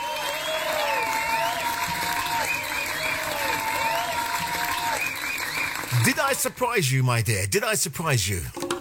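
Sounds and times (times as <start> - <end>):
applause: 0.0 - 6.8
speech: 6.0 - 8.7.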